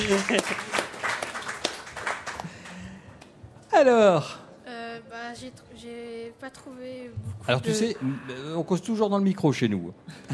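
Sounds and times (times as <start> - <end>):
people clapping: 0.0 - 3.4
speech: 0.1 - 0.8, 3.8 - 4.4, 5.4 - 10.3.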